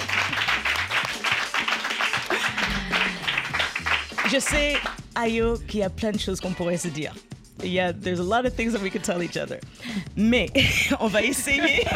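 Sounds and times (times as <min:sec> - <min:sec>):
applause: 0:00.0 - 0:05.0
laughter: 0:02.0 - 0:04.0, 0:10.6 - 0:11.9
speech: 0:04.3 - 0:11.9.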